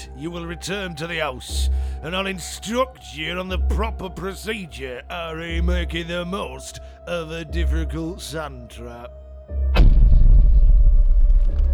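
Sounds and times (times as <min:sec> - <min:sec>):
speech: 0:00.2 - 0:09.6
ground rumbling: 0:09.8 - 0:11.7.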